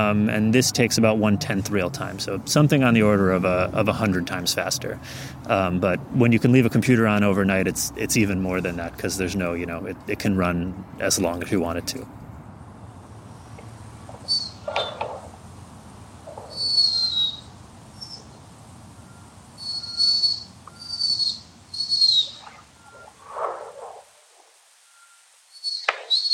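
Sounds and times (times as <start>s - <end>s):
speech: 0.0s - 12.2s
mouse pup calling for its mother: 14.1s - 15.4s, 16.2s - 18.3s, 19.6s - 24.0s.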